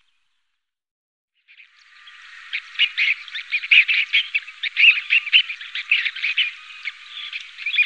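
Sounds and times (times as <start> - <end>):
Dunlin giving buzzy reeling vibrating trills: 1.6 - 7.8.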